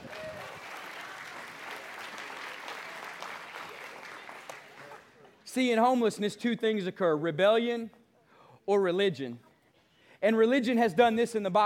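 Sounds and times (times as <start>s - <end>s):
audience applause: 0.0s - 5.4s
speech: 5.5s - 8.0s, 8.7s - 9.4s, 10.2s - 11.6s.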